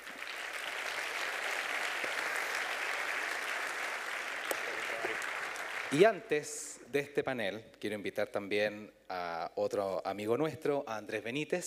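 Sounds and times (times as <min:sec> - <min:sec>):
audience applause: 0:00.0 - 0:06.1
speech: 0:05.9 - 0:11.6.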